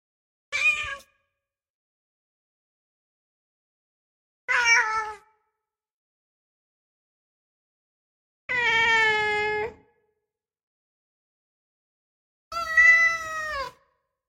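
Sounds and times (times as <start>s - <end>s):
cat meowing: 0.6s - 1.1s, 4.5s - 5.3s, 8.5s - 9.8s, 12.5s - 13.8s.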